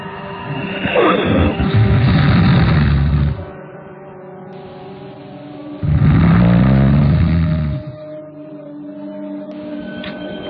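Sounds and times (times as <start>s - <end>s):
loud snoring: 0.7s - 3.6s, 5.8s - 8.1s.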